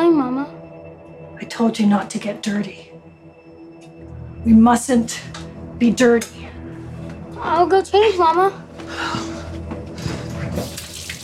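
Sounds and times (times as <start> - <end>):
speech: 1.6 - 2.9, 4.4 - 6.5, 7.4 - 9.3
hot bath water running from a tap: 10.5 - 11.2.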